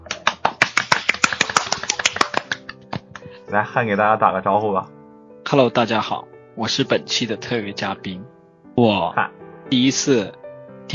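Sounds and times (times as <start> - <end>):
hand clapping: 0.0 - 3.4
speech: 3.5 - 10.9.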